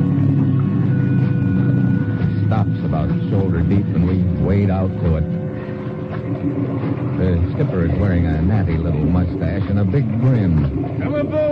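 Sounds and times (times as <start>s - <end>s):
boat engine droning: 0.0s - 11.4s
speech: 3.4s - 5.4s, 6.4s - 11.4s.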